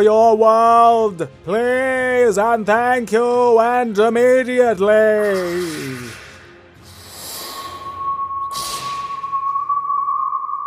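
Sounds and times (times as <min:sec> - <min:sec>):
speech: 0:00.0 - 0:06.2
distant whistle: 0:07.4 - 0:10.6.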